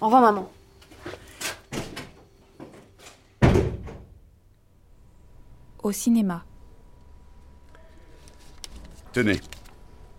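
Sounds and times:
speech: 0.0s - 0.6s, 5.8s - 6.5s, 9.2s - 9.6s
door slamming shut: 3.4s - 4.2s.

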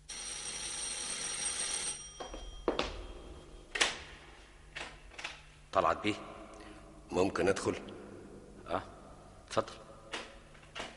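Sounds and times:
doorbell ringing: 0.1s - 3.7s
speech: 5.8s - 6.4s, 7.1s - 8.0s, 8.7s - 8.9s, 9.5s - 9.8s.

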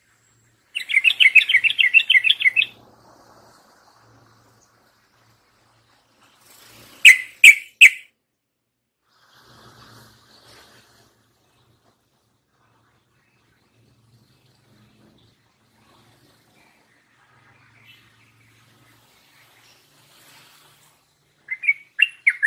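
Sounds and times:
yellow-vented bulbul chattering warbled song: 0.8s - 2.7s, 7.0s - 8.1s, 21.5s - 22.4s.

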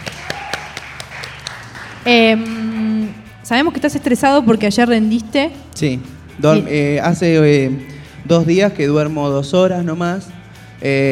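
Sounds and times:
audience applause: 0.0s - 2.1s
speech: 2.0s - 2.8s, 3.5s - 11.1s.

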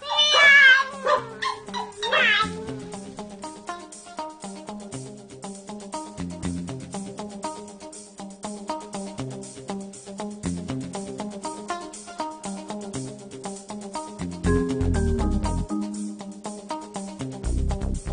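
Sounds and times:
pregnant cat meowing: 0.0s - 2.8s
bouncy rhythmic music track with plucked notes: 1.3s - 18.1s.

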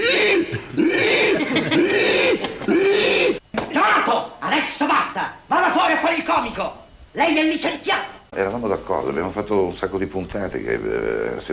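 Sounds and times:
person imitating squealing of pigs being slaughtered at a pork-processing plant: 0.0s - 3.4s
laughter: 2.5s - 11.5s
speech: 6.6s - 11.5s.

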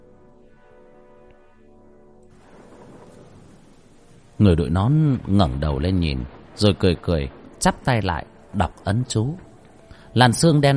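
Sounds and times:
rain falling lightly then pouring heavily: 2.3s - 10.7s
speech: 4.4s - 9.5s, 10.1s - 10.7s.

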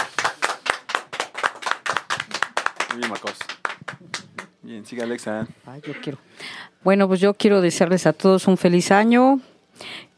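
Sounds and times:
hands clapping for a guest on a radio show: 0.0s - 5.2s
speech: 2.9s - 9.5s.

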